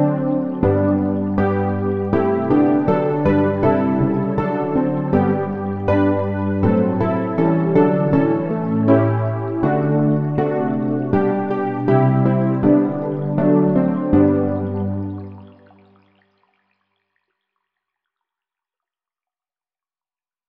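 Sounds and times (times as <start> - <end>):
electric piano: 0.0 - 15.8.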